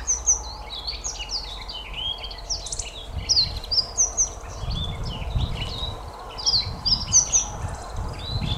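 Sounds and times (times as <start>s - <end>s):
kashiradaka singing: 0.0s - 8.5s.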